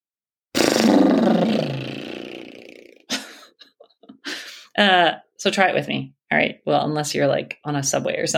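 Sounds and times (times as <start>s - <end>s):
person exhaling and blowing out lips: 0.6s - 3.1s
speech: 4.8s - 8.3s.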